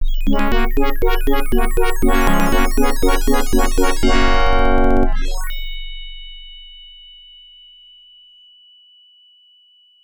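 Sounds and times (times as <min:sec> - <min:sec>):
fanfare: 0:00.3 - 0:05.5.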